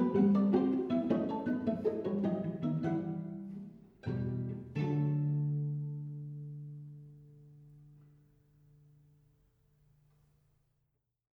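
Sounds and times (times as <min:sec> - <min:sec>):
string quartet playing: 0:00.0 - 0:07.1.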